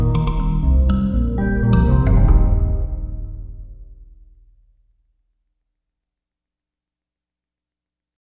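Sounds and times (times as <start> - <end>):
rhythm: 0.0 - 4.3.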